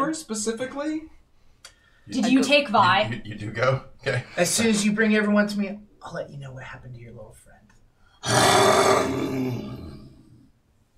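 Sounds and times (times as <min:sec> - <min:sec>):
speech: 0:00.1 - 0:01.2, 0:02.1 - 0:09.9
rough growl: 0:08.2 - 0:10.5.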